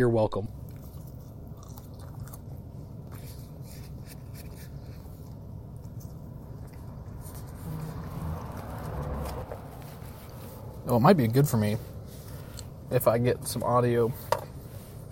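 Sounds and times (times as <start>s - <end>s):
speech: 0.0s - 0.6s, 10.9s - 11.9s, 12.9s - 14.3s
wet crunchy chewing while eating: 0.6s - 10.6s.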